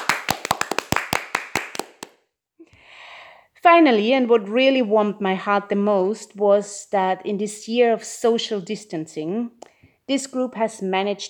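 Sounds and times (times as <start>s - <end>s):
applause: 0.0s - 2.2s
speech: 3.6s - 11.2s.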